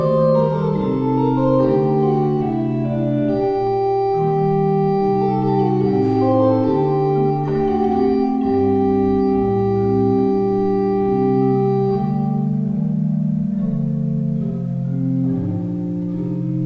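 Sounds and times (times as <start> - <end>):
pipe organ: 0.0 - 16.6.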